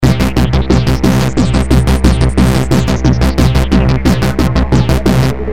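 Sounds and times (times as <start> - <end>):
techno music: 0.0 - 5.4.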